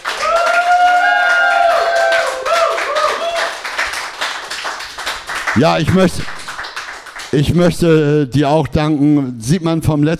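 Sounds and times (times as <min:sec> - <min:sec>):
audience applause: 0:00.0 - 0:07.7
speech: 0:05.6 - 0:06.4, 0:07.3 - 0:10.1.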